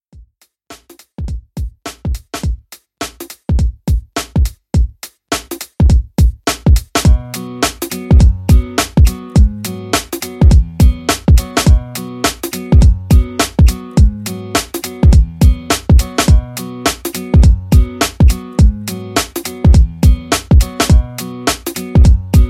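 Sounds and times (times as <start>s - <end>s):
pop drum beat: 0.2s - 22.4s.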